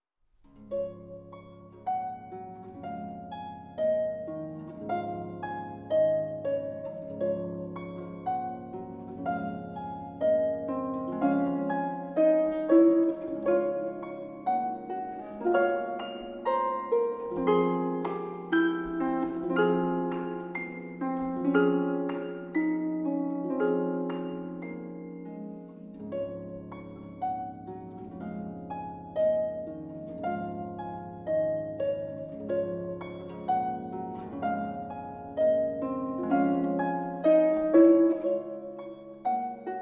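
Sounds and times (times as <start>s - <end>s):
harp prelude: 0.3s - 39.7s.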